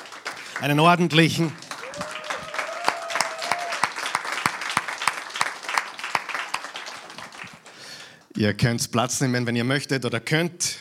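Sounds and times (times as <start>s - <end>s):
audience applause: 0.0s - 8.2s
speech: 0.6s - 1.6s, 8.4s - 10.7s.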